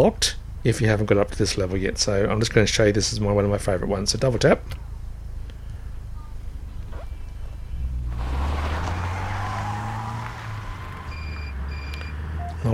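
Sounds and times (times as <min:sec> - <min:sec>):
speech: 0:00.0 - 0:04.8
mobile game low engine drone of oncoming cars: 0:00.0 - 0:12.7
mobile game oncoming car rushing whoosh with rising motor hum: 0:07.8 - 0:12.5
short high electronic game beeps: 0:11.1 - 0:12.7.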